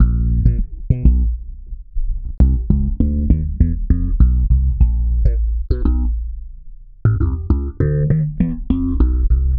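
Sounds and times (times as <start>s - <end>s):
processed slap electric bass: 0.0s - 9.5s.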